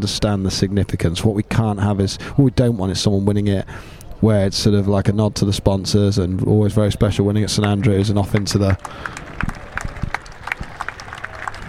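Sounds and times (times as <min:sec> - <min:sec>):
speech: 0:00.0 - 0:09.3
golf spectators clapping: 0:07.6 - 0:11.6.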